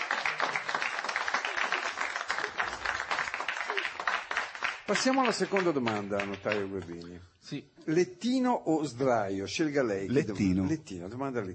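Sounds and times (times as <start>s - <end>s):
crowd applauding: 0.0s - 7.0s
speech: 4.9s - 11.5s.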